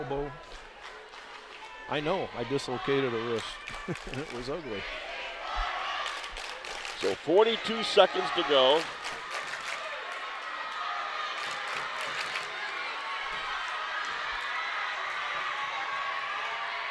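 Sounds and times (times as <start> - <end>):
speech: 0.0 - 0.6, 1.9 - 5.1, 7.0 - 9.0
student cheering section cheering at basketball game: 1.3 - 16.8
laughter: 3.6 - 4.8
clapping: 3.7 - 4.6, 6.0 - 7.1, 8.6 - 10.8, 11.4 - 12.6.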